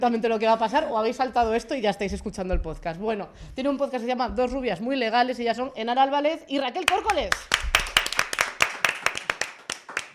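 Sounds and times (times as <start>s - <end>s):
speech: 0.0s - 7.8s
small group hand clapping in a studio: 6.9s - 10.1s.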